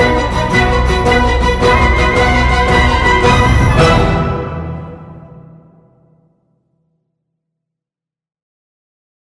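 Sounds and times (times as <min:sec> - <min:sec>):
battle music: 0:00.0 - 0:06.2.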